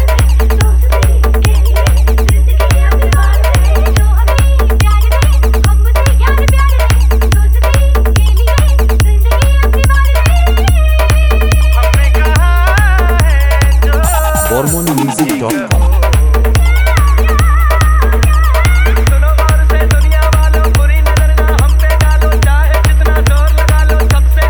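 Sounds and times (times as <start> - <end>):
humming dance music mix: 0.0 - 24.4.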